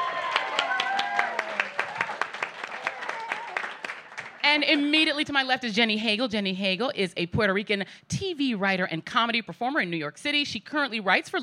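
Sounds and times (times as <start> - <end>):
audience applause: 0.0 - 4.9
speech: 4.5 - 11.4.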